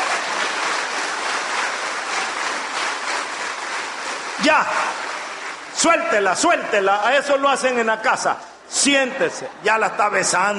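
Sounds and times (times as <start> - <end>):
audience applause: 0.0 - 7.4
speech: 4.4 - 5.0, 5.8 - 10.5.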